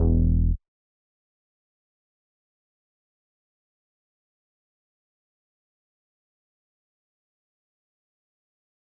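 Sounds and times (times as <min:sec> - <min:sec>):
bass: 0:00.0 - 0:00.6.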